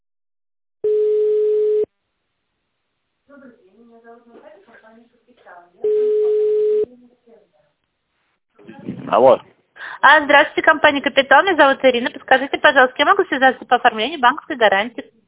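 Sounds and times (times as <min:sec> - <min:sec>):
telephone ringing tone while a call is transferred to the duty manager: 0:00.8 - 0:01.9, 0:05.8 - 0:06.9
speech: 0:08.6 - 0:15.2.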